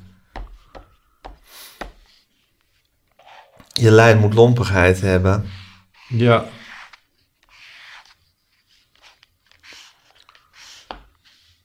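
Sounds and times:
pen pressed hard against paper tapping: 0.3s - 2.1s, 10.8s - 11.1s
pen scratching on paper while drawing: 0.5s - 11.6s
speech: 3.8s - 6.6s.

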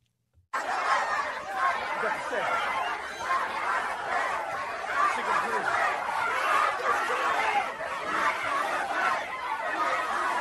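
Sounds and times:
laughter: 0.6s - 10.4s
protest crowd chanting and shouting: 0.6s - 10.4s.

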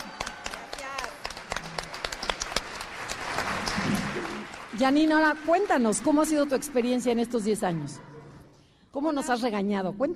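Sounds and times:
standing applause: 0.0s - 6.8s
speech: 4.8s - 8.1s, 8.9s - 10.1s.

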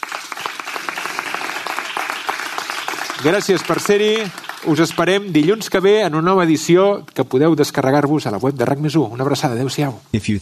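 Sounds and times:
audience applause: 0.0s - 6.0s
speech: 3.2s - 10.4s.

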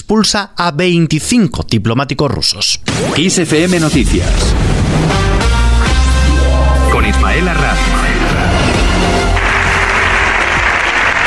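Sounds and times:
speech: 0.1s - 5.4s
unanimous standing ovation in parliament: 6.2s - 11.2s.

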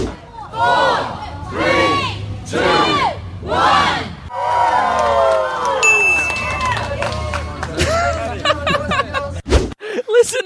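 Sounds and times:
crowd cheering and chattering: 0.0s - 9.4s
audience disappointed, scattered claps and murmurs: 4.6s - 8.9s
bright ding: 5.8s - 6.8s
laughter: 6.9s - 10.4s.

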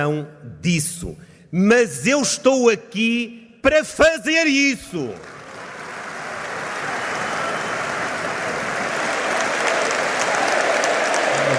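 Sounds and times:
speech: 0.0s - 5.4s
applause from congress delegates: 5.0s - 11.5s.

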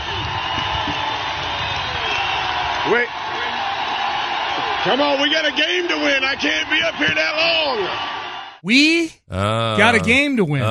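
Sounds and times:
stadium crowd standing ovation: 0.0s - 8.6s
speech: 2.9s - 3.2s, 4.8s - 10.7s.

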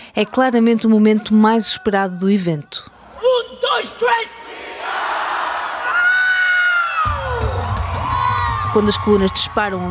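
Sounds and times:
speech: 0.2s - 4.4s, 8.8s - 9.9s
crowd cheering at an anime convention: 3.9s - 9.9s.

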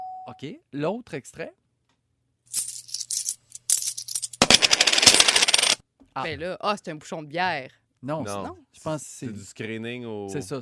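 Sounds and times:
speech: 0.3s - 1.6s, 6.2s - 10.5s
Canadian coins dropping and clinking: 2.5s - 5.8s.

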